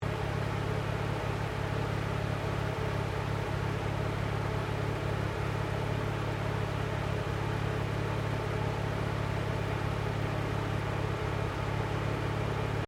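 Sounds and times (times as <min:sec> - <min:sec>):
Mazda RX7 Series 3 engine idling, exterior at the radiator: 0:00.0 - 0:12.8.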